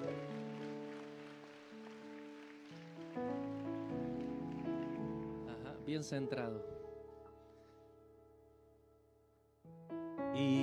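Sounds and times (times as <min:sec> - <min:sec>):
audience clapping: 0:00.0 - 0:06.4
speech: 0:05.9 - 0:06.8.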